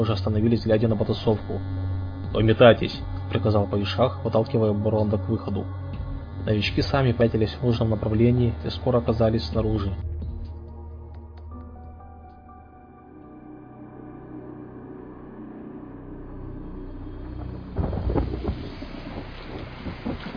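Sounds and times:
speech: 0:00.0 - 0:05.8, 0:06.4 - 0:10.1
cold wind with rain: 0:17.4 - 0:20.3.

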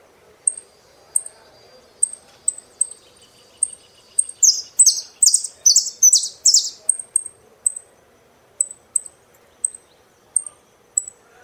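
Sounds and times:
Saffron finch song of buzzy chirps: 0:00.5 - 0:07.9, 0:08.6 - 0:11.2.

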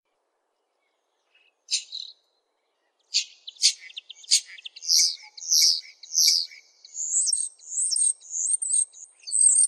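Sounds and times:
Oriental magpie-robin song: 0:00.8 - 0:02.2, 0:02.8 - 0:09.6.

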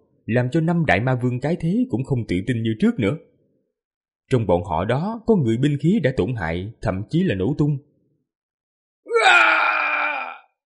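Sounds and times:
speech: 0:00.3 - 0:03.3, 0:04.3 - 0:07.9
human voice roaring in anguish and defiance: 0:09.1 - 0:10.5.

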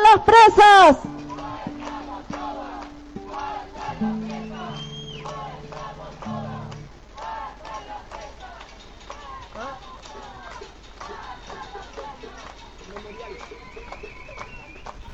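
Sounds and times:
crowd shouting greetings toward a prison: 0:00.0 - 0:08.6
speech: 0:00.2 - 0:01.2.

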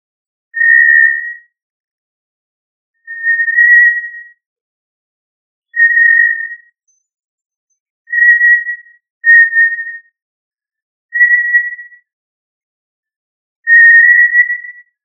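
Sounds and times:
quail whistles: 0:00.6 - 0:01.6, 0:03.0 - 0:04.4, 0:05.7 - 0:07.1, 0:08.1 - 0:10.2, 0:11.1 - 0:12.1, 0:13.6 - 0:15.0.

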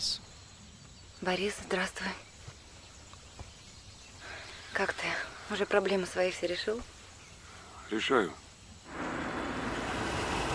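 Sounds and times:
speech: 0:01.2 - 0:02.3, 0:04.8 - 0:06.9, 0:07.9 - 0:08.4
car pulling up: 0:08.9 - 0:10.5.

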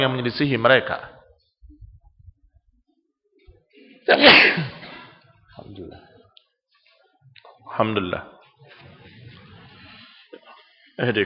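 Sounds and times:
speech: 0:00.0 - 0:01.1, 0:04.1 - 0:04.8, 0:07.8 - 0:08.4, 0:11.0 - 0:11.2
sneeze: 0:04.1 - 0:05.2.

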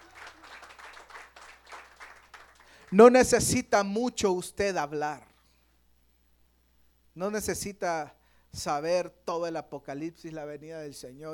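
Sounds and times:
church congregation clapping in praise during a service: 0:00.0 - 0:03.5
speech: 0:02.9 - 0:05.3, 0:07.2 - 0:11.3.

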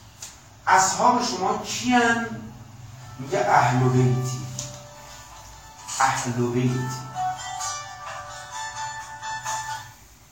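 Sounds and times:
speech: 0:00.7 - 0:02.5, 0:03.2 - 0:04.4, 0:06.0 - 0:07.0
mobile phone ringtone with bright pulsing electronic melody: 0:03.0 - 0:10.0.

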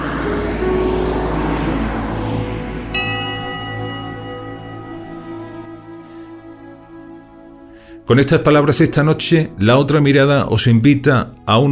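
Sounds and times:
line bus engine rumbling: 0:00.0 - 0:07.4
thin high-pitched whine: 0:00.0 - 0:07.8
speech: 0:08.1 - 0:11.7.

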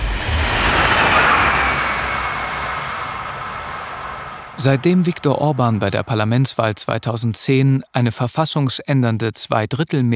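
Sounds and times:
low rumble of the moving train: 0:00.0 - 0:06.4
speech: 0:04.6 - 0:10.1.

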